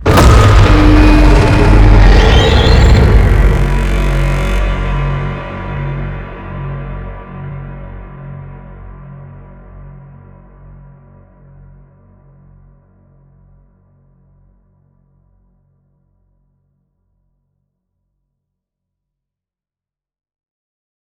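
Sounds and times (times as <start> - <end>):
boss explosion blasts with crunch and echo: 0.0 - 5.4.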